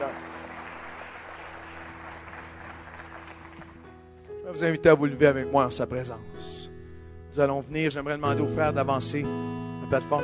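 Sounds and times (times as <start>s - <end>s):
audience applauding: 0.0s - 3.9s
speech: 4.5s - 6.6s, 7.4s - 10.2s.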